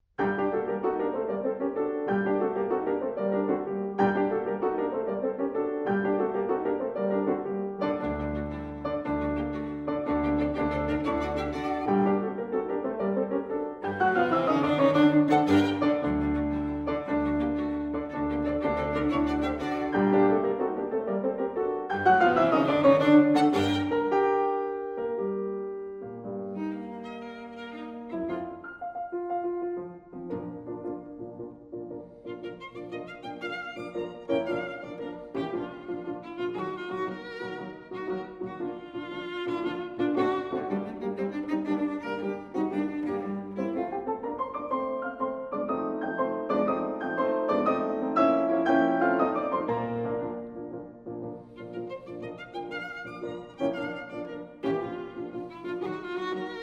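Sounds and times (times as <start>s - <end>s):
piano trio: 0.0s - 56.6s.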